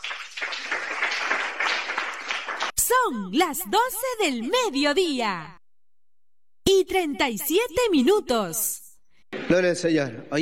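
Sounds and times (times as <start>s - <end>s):
applause in a Pentecostal church in Olmos: 0.0s - 2.8s
speech: 2.9s - 5.6s, 6.8s - 8.8s, 9.5s - 10.3s.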